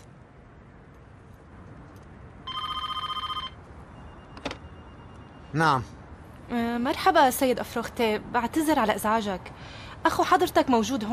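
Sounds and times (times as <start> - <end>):
telephone ringing during an outgoing call: 2.4 - 5.5
speech: 5.5 - 11.1.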